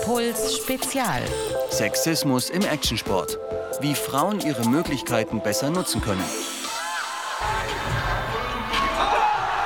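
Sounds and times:
speech: 0:00.1 - 0:06.5
crowd cheering at action sports contest: 0:06.6 - 0:09.6.

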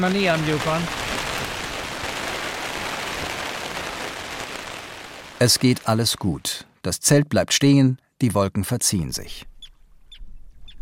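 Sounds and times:
speech: 0:00.0 - 0:01.0, 0:05.4 - 0:09.5
rain from a thunderstorm shower: 0:00.0 - 0:06.7.

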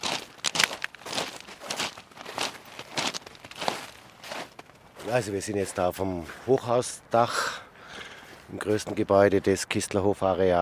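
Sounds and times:
footsteps on snow and gravel: 0:00.0 - 0:06.9
speech: 0:05.1 - 0:07.6, 0:08.5 - 0:10.6.

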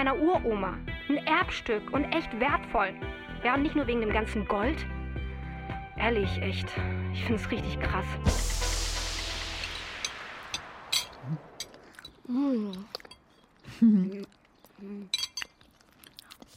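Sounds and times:
speech: 0:00.0 - 0:04.9, 0:06.0 - 0:08.7, 0:12.3 - 0:13.0, 0:13.7 - 0:15.2
falling whoosh: 0:08.3 - 0:12.2
cutlery or glass clinking: 0:11.0 - 0:13.5, 0:15.1 - 0:15.7
people chewing lime cake: 0:11.7 - 0:16.5.

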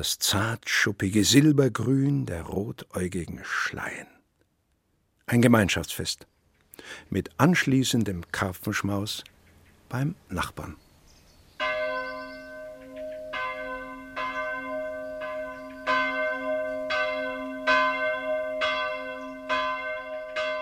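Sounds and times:
speech: 0:00.0 - 0:04.2, 0:05.3 - 0:09.3, 0:09.9 - 0:10.8
church bells ringing: 0:11.6 - 0:20.6.

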